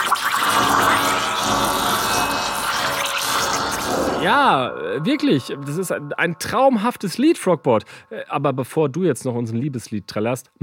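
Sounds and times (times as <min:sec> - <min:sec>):
espresso machine milk frother humming and hissing: 0:00.0 - 0:04.2
speech: 0:04.2 - 0:10.6.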